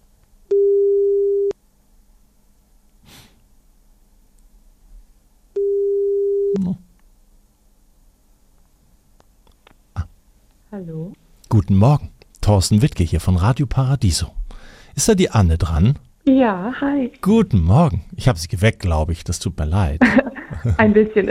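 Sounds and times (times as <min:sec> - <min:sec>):
telephone ringback tone: 0:00.5 - 0:01.5, 0:05.6 - 0:06.6
soft breathing: 0:03.0 - 0:03.4, 0:14.4 - 0:15.0
speech: 0:10.8 - 0:21.3
laughter: 0:20.0 - 0:21.3.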